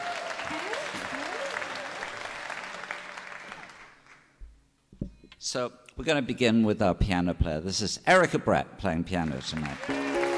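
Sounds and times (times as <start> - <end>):
audience applause: 0.0 - 4.2, 9.3 - 10.3
speech: 5.4 - 10.1.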